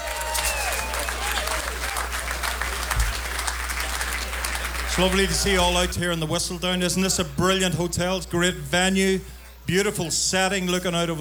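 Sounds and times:
audience applause: 0.0 - 5.9
speech: 5.0 - 11.1.

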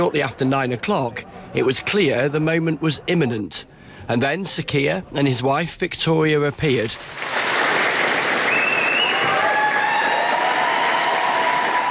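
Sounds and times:
speech: 0.0 - 7.4
staff applauding in the street: 7.0 - 11.9.

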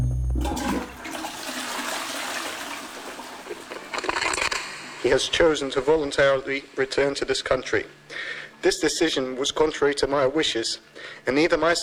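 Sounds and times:
toilet flushing: 0.3 - 7.7
speech: 5.0 - 11.8.

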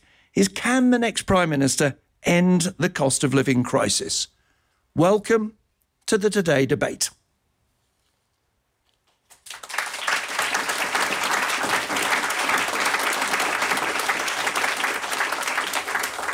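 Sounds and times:
speech: 0.4 - 4.4, 5.0 - 7.2
studio audience applauding in London's Broadcasting House: 9.3 - 16.3.

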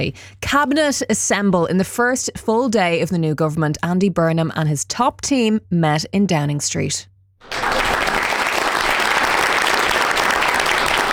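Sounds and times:
speech: 0.0 - 7.6
applause for the new prime minister: 7.4 - 11.1.

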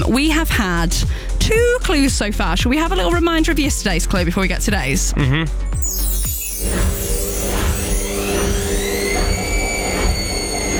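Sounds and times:
speech: 0.1 - 6.1
washing machine on spin cycle: 5.8 - 10.7.

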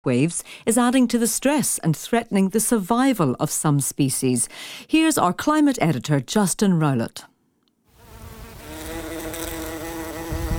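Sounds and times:
speech: 0.0 - 7.3
bumblebees buzzing: 8.0 - 10.5.

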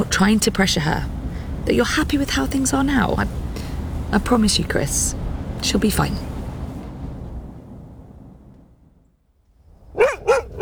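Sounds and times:
low rumble: 0.0 - 9.2
speech: 0.1 - 3.4, 4.1 - 6.3
dog barking: 9.9 - 10.6.

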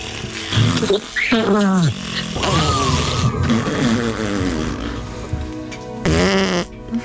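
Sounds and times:
blowing a raspberry: 0.0 - 5.3, 6.0 - 6.8.

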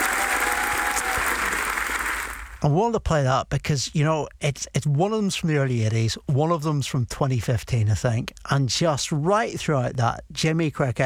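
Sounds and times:
comedy show audience applause: 0.0 - 2.7
speech: 2.6 - 11.0.

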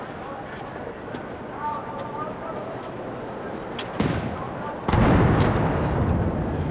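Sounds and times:
steady murmur of noise: 0.0 - 6.6
ceremonial artillery gun salute near Buckingham Palace in a royal park: 4.0 - 6.6.

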